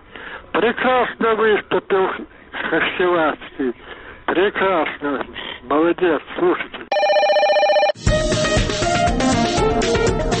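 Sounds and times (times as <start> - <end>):
speech: 0.6 - 6.8
electronic telephone bell ringing: 6.9 - 8.0
loud rhythmic music with a driving beat: 8.0 - 10.3.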